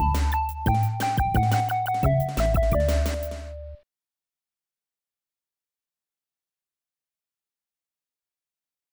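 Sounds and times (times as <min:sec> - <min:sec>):
nursery rhyme song: 0:00.0 - 0:03.6.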